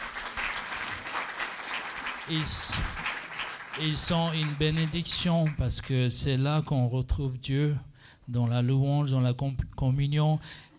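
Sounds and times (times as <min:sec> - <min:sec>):
church congregation applauding its worship team: 0:00.0 - 0:06.2
speech: 0:02.3 - 0:03.0, 0:03.8 - 0:10.7.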